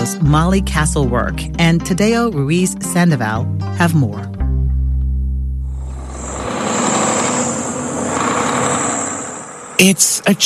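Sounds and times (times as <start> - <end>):
speech: 0.1 - 4.4, 9.8 - 10.4
soybean and corn farmer's truck engine hum: 4.9 - 10.4
truck road rumble in north central Minnesota: 5.6 - 10.4.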